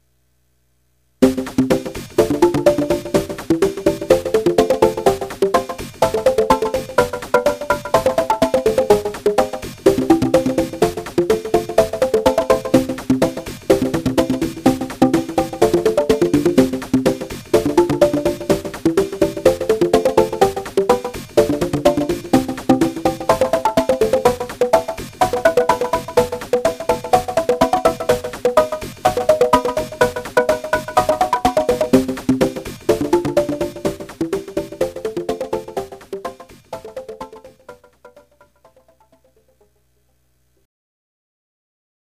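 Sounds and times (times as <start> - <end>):
bongo drums: 1.2 - 37.8.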